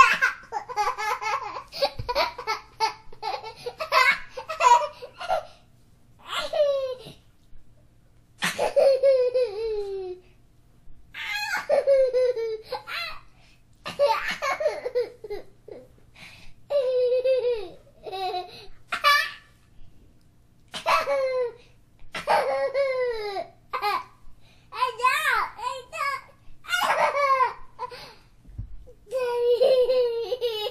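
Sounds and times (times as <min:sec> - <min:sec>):
child laughing: 0:00.0 - 0:05.5, 0:06.2 - 0:07.2, 0:08.4 - 0:10.2, 0:11.2 - 0:13.3, 0:13.9 - 0:15.9, 0:16.7 - 0:19.5, 0:20.8 - 0:21.6, 0:22.2 - 0:24.2, 0:24.8 - 0:28.2, 0:29.0 - 0:30.6.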